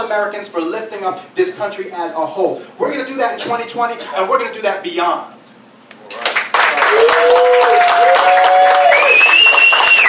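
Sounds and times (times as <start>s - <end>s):
speech: 0.0s - 5.4s
audience applause: 6.2s - 10.0s.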